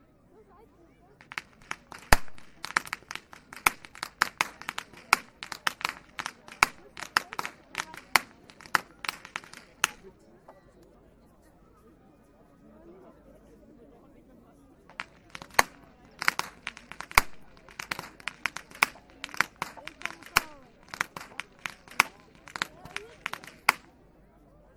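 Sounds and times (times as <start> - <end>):
youth whip cracking: 1.2 - 10.0, 14.9 - 23.9.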